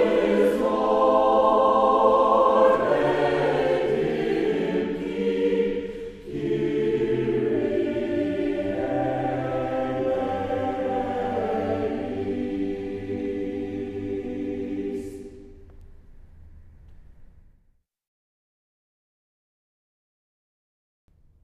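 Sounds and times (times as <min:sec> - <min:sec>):
choir singing: 0:00.0 - 0:15.6.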